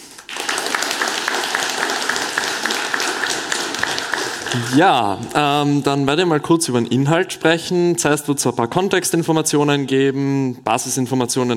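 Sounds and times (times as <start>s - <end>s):
crowd applause: 0.0s - 5.3s
speech: 4.5s - 11.5s.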